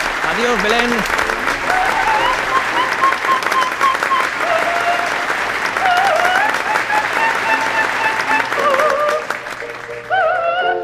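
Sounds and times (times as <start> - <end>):
audience applause: 0.0 - 10.7
speech: 0.4 - 3.7.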